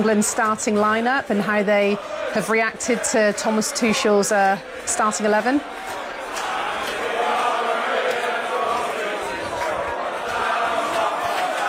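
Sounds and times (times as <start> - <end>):
speech: 0.0 - 6.0
football fans chanting: 0.0 - 11.6.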